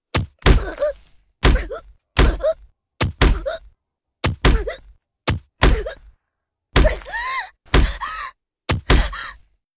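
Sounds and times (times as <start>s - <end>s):
punch to the stomach: 0.2s - 3.6s, 4.2s - 6.0s, 6.8s - 9.2s.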